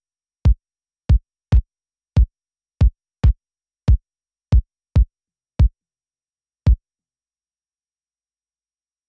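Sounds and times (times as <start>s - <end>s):
kick drum: 0.5s - 5.7s.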